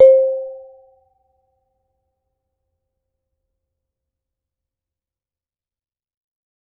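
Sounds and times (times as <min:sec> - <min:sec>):
bonang gamelan music: 0:00.0 - 0:00.7.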